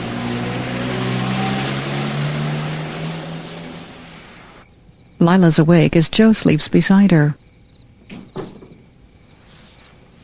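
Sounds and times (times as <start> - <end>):
car engine drone as a woman drives away: 0.0 - 4.9
broad road noise: 0.0 - 7.3
speech: 5.2 - 7.4.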